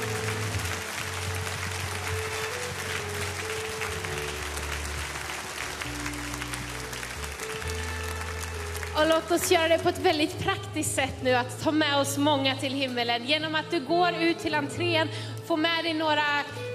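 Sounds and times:
warm applause: 0.0s - 9.8s
speech: 9.0s - 16.7s.

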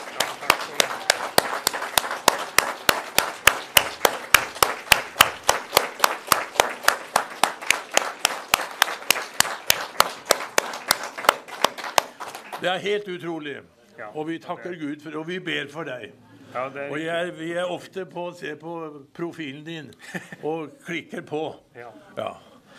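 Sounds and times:
audience clapping in a steady rhythm: 0.0s - 13.0s
speech: 12.6s - 22.4s.

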